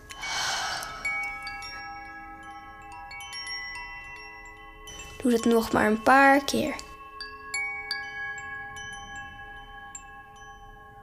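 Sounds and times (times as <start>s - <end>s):
soft breath during a guided gratitude breathing exercise: 0.0s - 1.6s
gentle sustained tones: 0.0s - 11.0s
light chime notes: 0.0s - 11.0s
speech: 5.2s - 6.8s.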